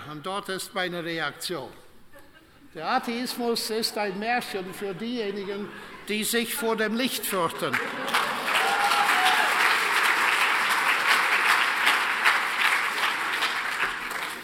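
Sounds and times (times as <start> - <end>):
speech: 0.1 - 1.8, 2.8 - 8.2
laughter: 2.0 - 9.5
audience applause: 7.6 - 14.4.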